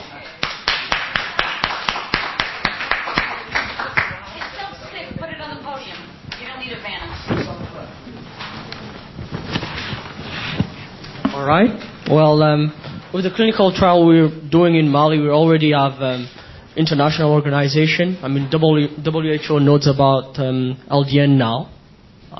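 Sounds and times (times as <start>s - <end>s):
crowd applauding: 0.4s - 4.7s
speech: 11.5s - 21.8s.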